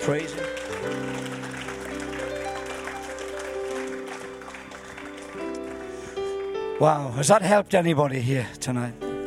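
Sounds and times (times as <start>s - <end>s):
speech: 0.0s - 1.2s, 6.8s - 9.0s
audience clapping and applauding: 0.0s - 6.8s
sustained organ or keyboard chords: 0.0s - 7.7s.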